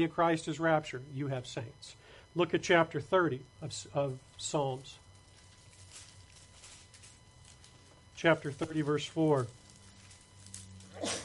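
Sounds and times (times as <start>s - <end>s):
speech: 0.0s - 5.0s, 8.2s - 9.6s
low steady electrical hum: 0.0s - 11.2s
person sneezing: 10.9s - 11.2s.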